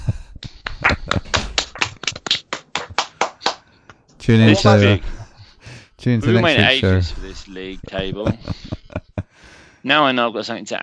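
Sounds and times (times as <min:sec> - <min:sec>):
round of applause: 0:00.6 - 0:03.6, 0:04.5 - 0:05.0
laughter: 0:04.2 - 0:10.2
speech: 0:04.3 - 0:05.2, 0:06.0 - 0:08.8, 0:09.8 - 0:10.8.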